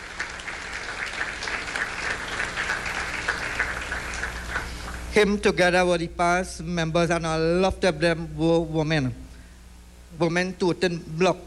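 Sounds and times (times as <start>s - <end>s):
crowd applauding: 0.0s - 5.2s
speech: 5.2s - 9.2s, 10.2s - 11.4s.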